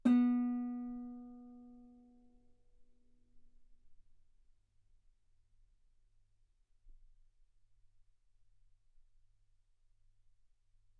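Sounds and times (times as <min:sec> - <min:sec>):
guitar B3 note on B string played fortissimo: 0:00.0 - 0:01.7.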